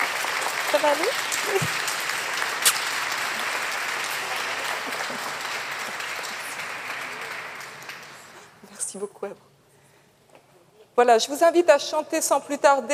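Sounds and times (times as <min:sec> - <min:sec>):
audience applause: 0:00.0 - 0:08.5
speech: 0:00.7 - 0:01.9, 0:08.9 - 0:09.5, 0:11.0 - 0:12.9.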